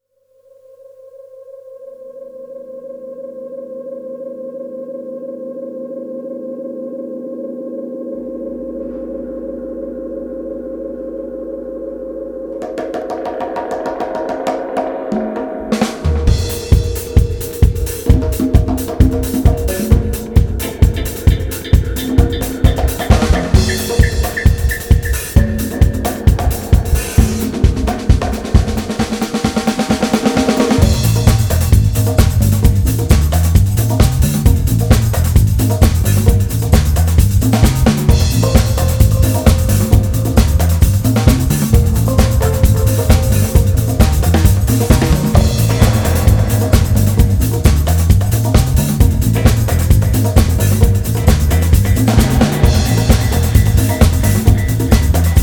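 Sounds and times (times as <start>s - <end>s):
funk dub music: 12.5s - 55.4s.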